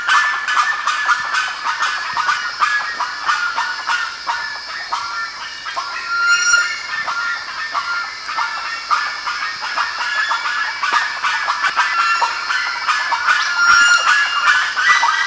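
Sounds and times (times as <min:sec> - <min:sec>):
constant hiss: 0:00.0 - 0:15.2
bird calls: 0:05.0 - 0:15.2.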